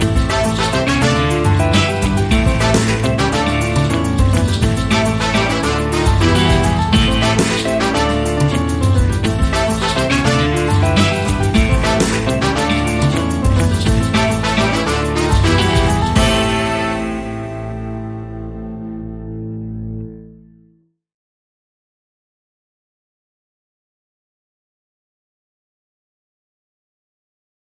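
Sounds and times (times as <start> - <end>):
Latin Spanish salsa music: 0.0 - 19.1.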